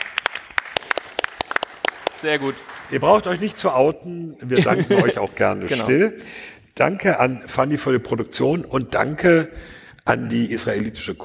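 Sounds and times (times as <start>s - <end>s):
scattered audience applause: 0.0s - 3.4s
speech: 2.2s - 11.2s
laughter: 4.4s - 6.1s.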